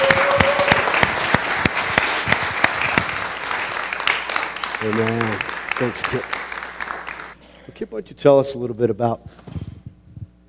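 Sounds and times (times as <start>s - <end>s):
church congregation applause welcoming a guest to the platform: 0.0s - 7.4s
speech: 4.8s - 6.4s, 7.8s - 9.6s.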